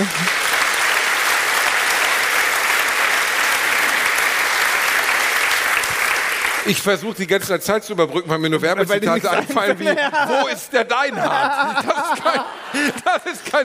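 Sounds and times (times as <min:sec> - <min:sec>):
audience applause: 0:00.0 - 0:06.8
speech: 0:06.7 - 0:13.6
laughter: 0:08.9 - 0:13.6.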